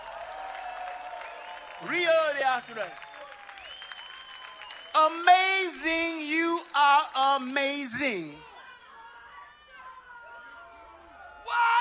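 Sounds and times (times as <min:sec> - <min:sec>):
audience applause: 0:00.0 - 0:05.7
speech: 0:01.8 - 0:03.1, 0:05.0 - 0:08.4.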